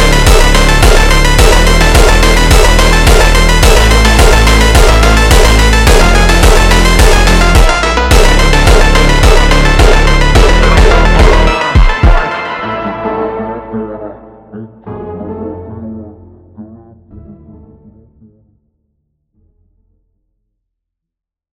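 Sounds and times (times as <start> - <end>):
super slowed jumpstyle music: 0.0 - 15.8.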